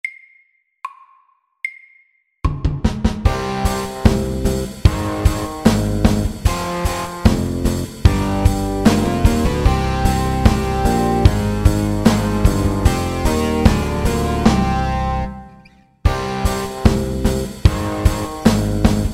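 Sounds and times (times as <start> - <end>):
slow rock beat: 3.3 - 15.4, 16.1 - 19.1.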